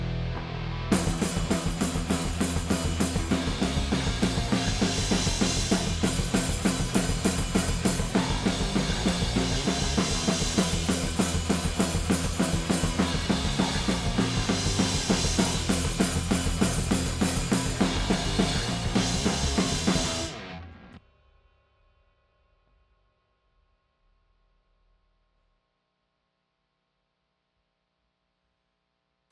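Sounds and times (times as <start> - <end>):
drum stems: 0.0 - 22.0.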